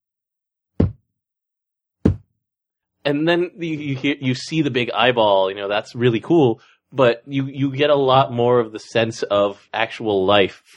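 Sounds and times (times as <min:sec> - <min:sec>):
dull heavy thumps on a table: 0:00.8 - 0:01.0, 0:02.0 - 0:02.3
speech: 0:03.1 - 0:10.7.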